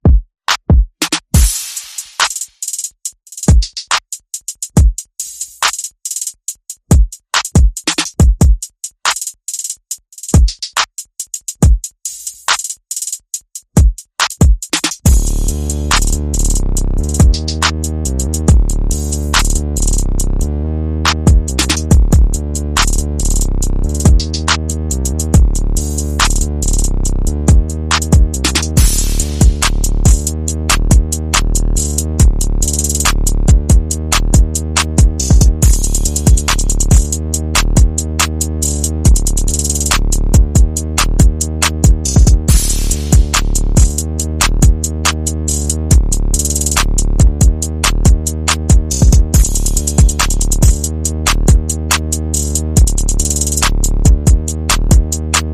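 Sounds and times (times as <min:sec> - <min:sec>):
percussion: 0:00.0 - 0:20.4, 0:21.1 - 0:55.5
bass: 0:15.0 - 0:55.5.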